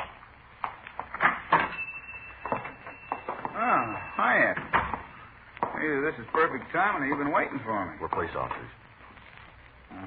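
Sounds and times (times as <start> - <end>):
shop door creaking: 1.1 - 5.3
speech: 5.8 - 8.8.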